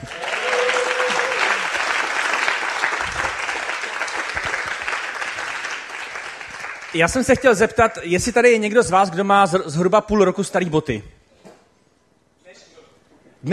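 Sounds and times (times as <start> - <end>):
applause: 0.0 - 7.8
speech: 7.0 - 11.1.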